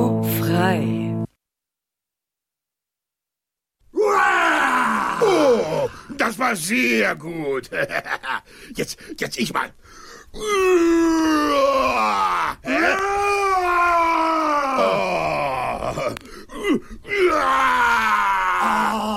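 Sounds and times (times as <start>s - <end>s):
speech: 0.5s - 1.1s, 6.4s - 14.0s
person imitating a roar with a strained groaning vocal bellow: 4.0s - 6.0s, 10.4s - 19.1s.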